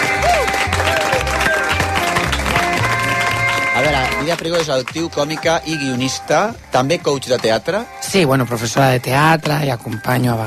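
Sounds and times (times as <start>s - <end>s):
audience applause: 0.0s - 7.8s
speech: 4.3s - 10.4s.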